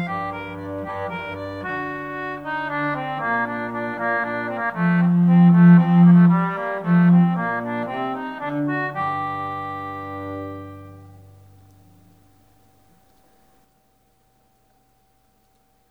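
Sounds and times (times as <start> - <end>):
concertina playing a hornpipe: 0.0 - 12.2.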